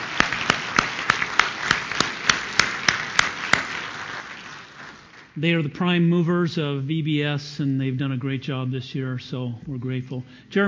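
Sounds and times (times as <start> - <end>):
audience applauding: 0.0 - 5.4
speech: 5.4 - 10.6.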